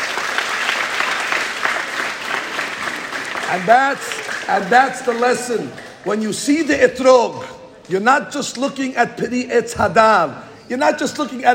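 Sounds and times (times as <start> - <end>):
audience clapping: 0.0 - 6.2
speech: 3.5 - 11.5.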